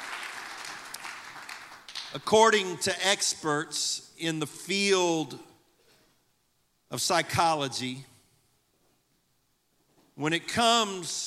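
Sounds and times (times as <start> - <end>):
audience hand clapping: 0.0 - 2.2
speech: 2.1 - 5.5, 6.9 - 8.1, 10.2 - 11.2.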